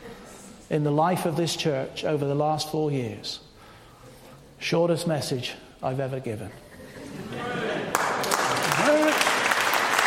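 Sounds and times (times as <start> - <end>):
speech: 0.7 - 3.5, 4.6 - 6.6
audience applause: 7.9 - 10.0.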